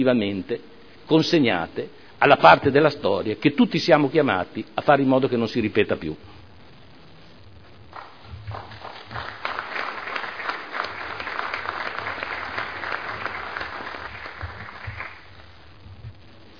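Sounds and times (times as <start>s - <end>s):
speech: 0.0s - 6.3s
applause from council and audience: 7.9s - 15.6s.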